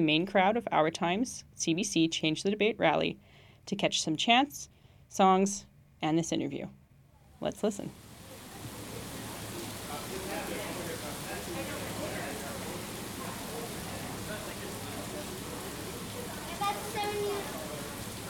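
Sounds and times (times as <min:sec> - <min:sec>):
speech: 0:00.0 - 0:06.8, 0:07.4 - 0:08.0
summer thunderstorm downpour: 0:07.9 - 0:18.2.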